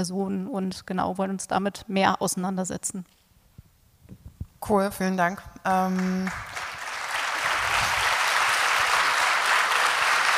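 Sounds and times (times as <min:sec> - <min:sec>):
speech: 0:00.0 - 0:03.2, 0:04.6 - 0:06.6
audience applause: 0:06.0 - 0:10.3.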